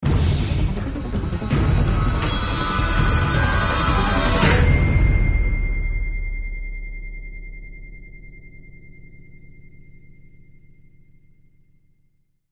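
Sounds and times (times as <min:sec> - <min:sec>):
outro stinger music: 0:00.0 - 0:08.6.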